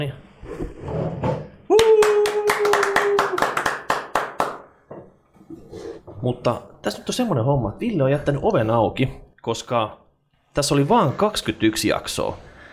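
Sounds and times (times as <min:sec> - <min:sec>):
speech: 0:00.0 - 0:01.2, 0:06.2 - 0:10.0, 0:10.6 - 0:12.5
hosts clapping in a standing ovation: 0:01.7 - 0:04.7.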